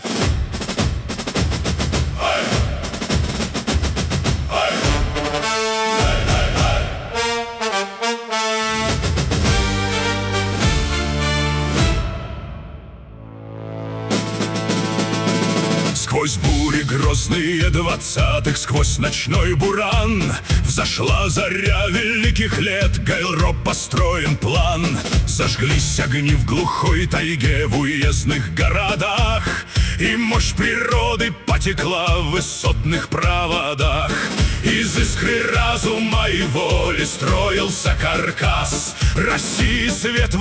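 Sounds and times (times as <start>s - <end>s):
march music: 0.0s - 40.3s.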